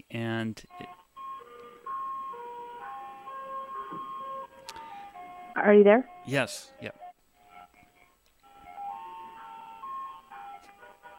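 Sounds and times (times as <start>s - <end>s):
speech: 0.1s - 1.0s, 5.6s - 7.0s
ice cream truck jingle outside an apartment: 0.6s - 7.8s, 8.4s - 11.1s.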